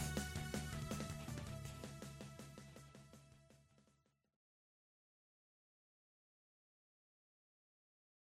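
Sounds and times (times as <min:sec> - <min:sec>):
boss battle music arrangement: 0:00.0 - 0:03.1.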